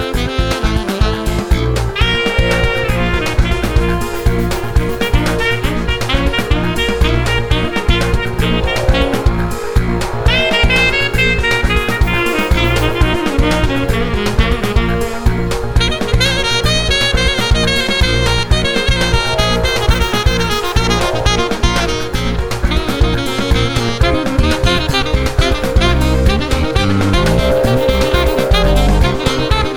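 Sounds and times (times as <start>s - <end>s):
saxophone: 0.0s - 29.7s.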